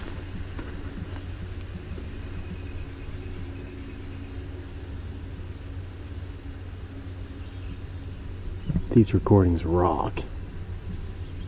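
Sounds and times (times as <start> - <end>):
House Wren singing: 0.0 - 11.4.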